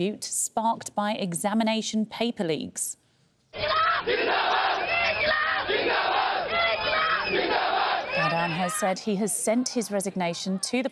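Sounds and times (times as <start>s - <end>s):
speech: 0.0s - 4.6s, 8.3s - 10.9s
large protest crowd shouting and chanting: 3.6s - 10.7s.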